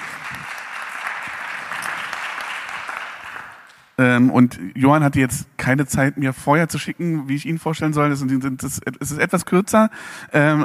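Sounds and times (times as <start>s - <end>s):
audience applause: 0.0s - 3.9s
speech: 4.0s - 10.6s.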